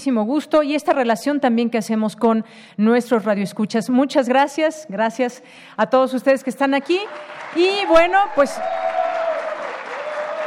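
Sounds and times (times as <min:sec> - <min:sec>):
speech: 0:00.0 - 0:08.8
audience applause: 0:07.0 - 0:10.4.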